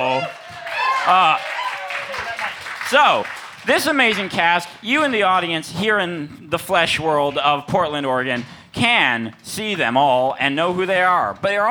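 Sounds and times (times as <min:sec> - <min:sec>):
audience applause: 0:00.0 - 0:05.5
speech: 0:01.0 - 0:01.5, 0:02.9 - 0:11.6.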